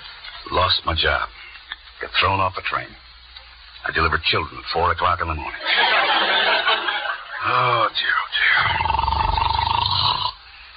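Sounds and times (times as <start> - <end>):
speech: 0.7 - 1.4, 2.0 - 3.0, 3.8 - 6.5, 7.4 - 9.0
laughter: 5.6 - 7.9
snoring: 8.6 - 10.4.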